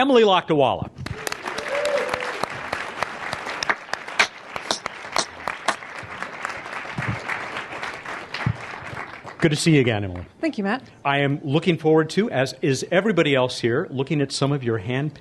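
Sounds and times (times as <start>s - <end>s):
speech: 0.0s - 1.0s, 9.4s - 15.1s
audience applause welcoming a speaker at a Planetary Society event: 1.0s - 10.2s.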